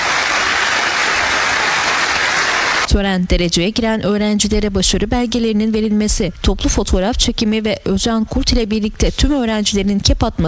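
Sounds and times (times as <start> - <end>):
applause at a university graduation ceremony: 0.0 - 2.9
speech: 3.0 - 10.4.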